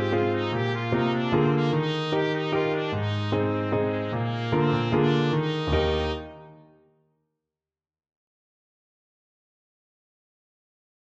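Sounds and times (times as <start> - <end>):
trumpet: 0.0 - 6.7.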